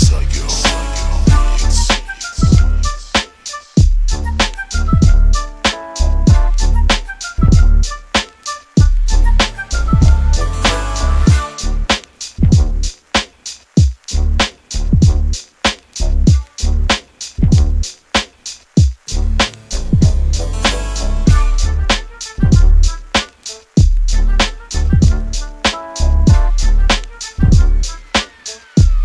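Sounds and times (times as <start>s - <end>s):
beats: 0.0s - 29.0s.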